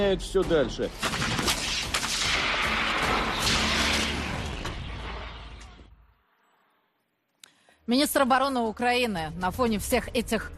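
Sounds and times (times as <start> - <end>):
speech: 0.0 - 1.6, 7.9 - 10.5
dense continuous gunfire: 0.9 - 5.8.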